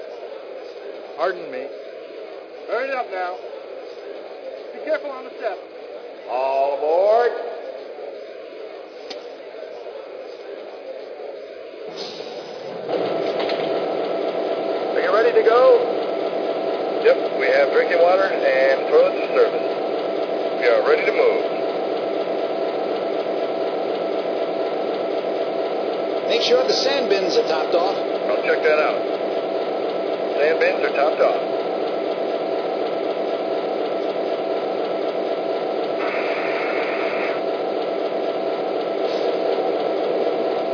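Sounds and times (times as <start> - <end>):
E6 electric trains: 0.0 - 40.7.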